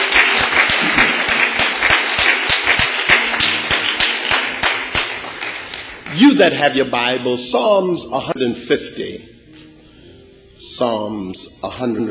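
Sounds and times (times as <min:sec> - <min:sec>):
audience hand clapping: 0:00.0 - 0:06.4
speech: 0:06.2 - 0:09.3, 0:10.7 - 0:12.0.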